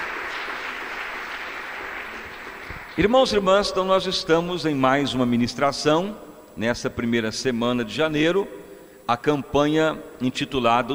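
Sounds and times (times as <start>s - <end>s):
church congregation clapping to praise the Lord Jesus: 0.0s - 3.6s
speech: 3.0s - 10.9s.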